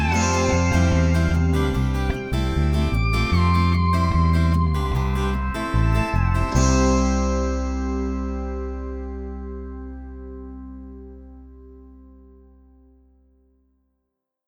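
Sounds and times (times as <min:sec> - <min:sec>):
music track without drums: 0:00.0 - 0:13.4.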